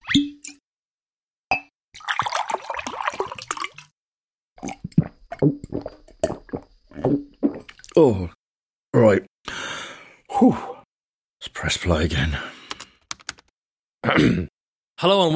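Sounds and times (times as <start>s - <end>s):
sparkling water going down the drain: 2.0s - 3.9s, 4.6s - 8.0s
speech: 8.0s - 8.4s, 10.4s - 10.7s, 11.7s - 12.5s, 14.2s - 15.3s.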